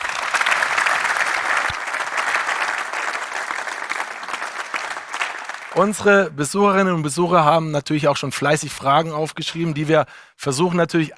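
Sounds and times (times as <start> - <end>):
audience applause: 0.0 - 6.2
speech: 5.8 - 11.1.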